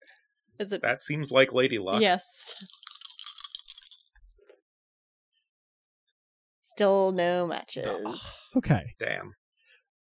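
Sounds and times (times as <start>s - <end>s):
speech: 0.6s - 2.8s, 6.8s - 9.4s
dice rattling: 2.6s - 4.2s.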